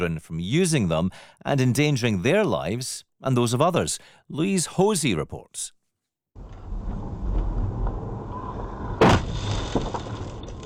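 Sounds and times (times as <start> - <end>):
speech: 0.0 - 5.8
high-speed e-motorbike crashing into a car: 6.6 - 10.6.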